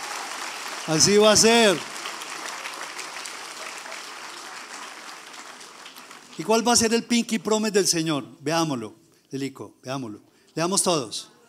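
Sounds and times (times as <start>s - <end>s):
audience applauding: 0.0s - 6.8s
speech: 0.8s - 1.9s, 6.4s - 11.4s.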